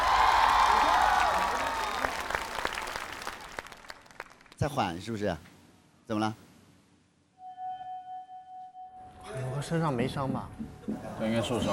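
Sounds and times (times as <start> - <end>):
audience cheering: 0.0 - 3.9
audience applause: 0.0 - 4.6
speech: 4.6 - 5.5, 6.1 - 6.4, 9.6 - 11.7.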